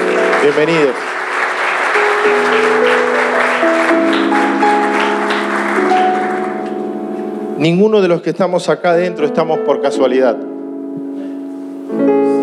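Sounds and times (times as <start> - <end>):
audience applause for visitors: 0.0 - 7.0
speech: 0.4 - 1.1, 2.2 - 3.0, 7.6 - 10.5.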